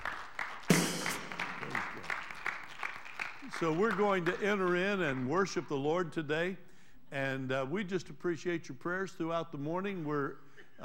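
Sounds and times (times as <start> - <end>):
audience applause: 0.0 - 5.3
speech: 3.5 - 10.8.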